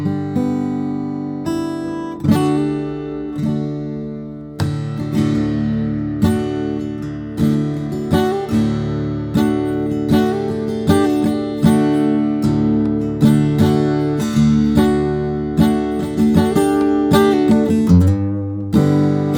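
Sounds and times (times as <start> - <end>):
steel-string guitars of Brazilian rosewood and Italian spruce: 0.0 - 19.3.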